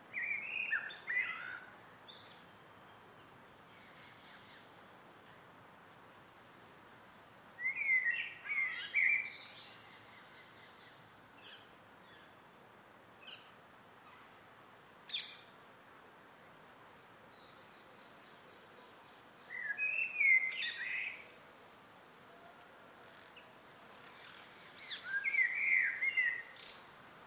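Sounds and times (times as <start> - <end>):
close blackbird singing in an evening garden: 0.1 - 2.4, 7.6 - 12.3, 18.8 - 21.5, 24.1 - 27.2
evening garden birds singing: 0.2 - 4.7, 7.6 - 12.3, 17.3 - 21.6, 23.1 - 27.2.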